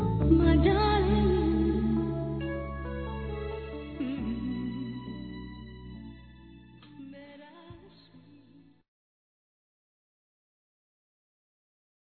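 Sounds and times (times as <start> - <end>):
woman singing a flirtatious song: 0.1 - 2.5, 3.5 - 6.1, 6.9 - 8.7.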